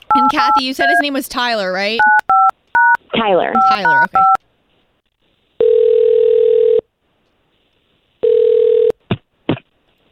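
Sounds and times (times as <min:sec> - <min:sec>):
telephone ringing on the line: 0:00.1 - 0:01.0, 0:03.6 - 0:04.4, 0:05.6 - 0:06.9, 0:08.2 - 0:09.0
speech: 0:00.2 - 0:02.2, 0:03.2 - 0:04.4.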